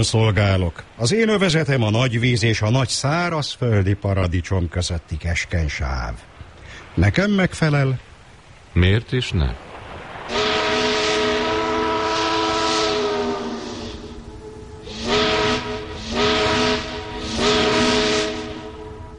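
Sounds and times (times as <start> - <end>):
speech: 0.0 - 6.3, 7.0 - 8.1, 8.7 - 9.6
steamboat whistle: 10.3 - 19.1.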